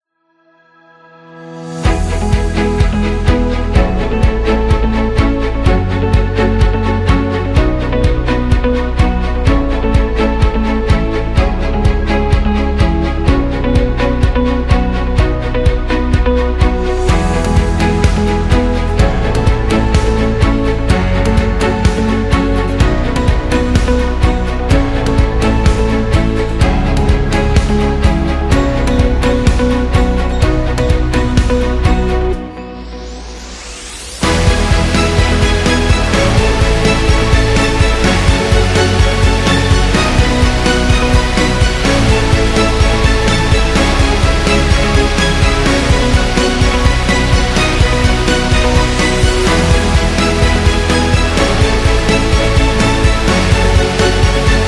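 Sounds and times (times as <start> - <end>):
motivational corporate music: 0.6 - 54.6.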